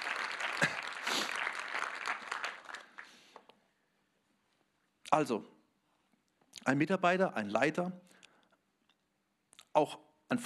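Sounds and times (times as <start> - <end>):
audience applauding: 0.0 - 3.4
speech: 5.1 - 5.5, 6.6 - 8.1, 9.8 - 10.4.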